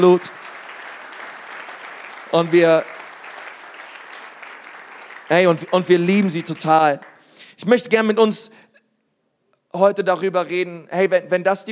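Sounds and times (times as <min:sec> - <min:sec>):
speech: 0:00.0 - 0:00.4, 0:02.3 - 0:03.0, 0:05.3 - 0:08.6, 0:09.7 - 0:11.7
audience applause: 0:00.0 - 0:07.3.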